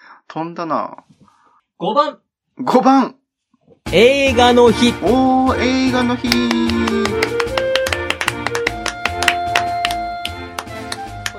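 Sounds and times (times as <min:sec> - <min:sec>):
speech: 0:00.4 - 0:01.2, 0:01.8 - 0:03.2, 0:03.8 - 0:07.5
hand clapping: 0:06.2 - 0:11.3.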